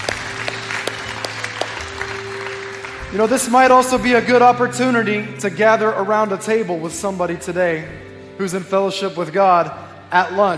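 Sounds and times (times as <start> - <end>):
church congregation applauding to welcome new members: 0.0 - 5.1
speech: 3.1 - 10.5.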